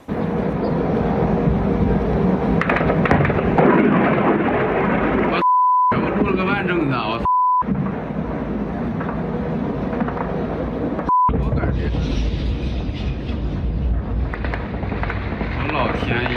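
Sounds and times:
explosion at an oil refinery near Moscow after a drone strike: 0:00.0 - 0:16.3
people talking: 0:05.3 - 0:07.3, 0:11.3 - 0:12.2, 0:15.6 - 0:16.3
flat electronic bleeps: 0:05.4 - 0:06.0, 0:07.2 - 0:07.7, 0:11.1 - 0:11.4.

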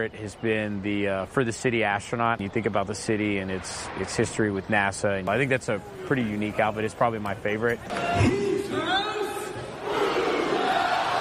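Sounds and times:
speech: 0:00.0 - 0:08.5
arena crowd call-and-response chant: 0:07.8 - 0:11.1.

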